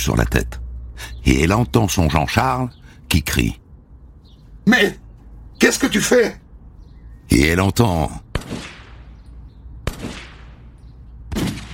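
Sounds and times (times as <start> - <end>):
speech: 0.0 - 3.6, 4.7 - 5.0, 5.6 - 6.4, 7.3 - 8.2
gunshots: 8.2 - 11.7.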